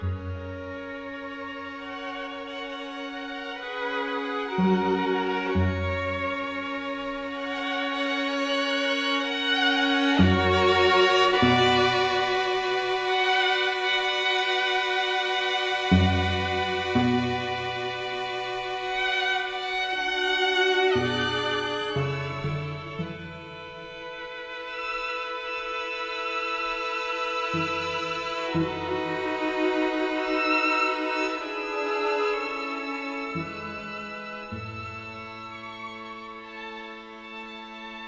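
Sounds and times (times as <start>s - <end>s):
string quartet playing: 0.0s - 38.0s.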